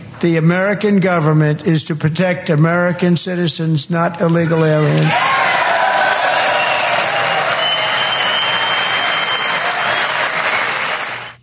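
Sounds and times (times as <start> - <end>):
speech: 0.2 - 5.5
sustained loud applause and cheering from a large crowd: 5.0 - 11.4.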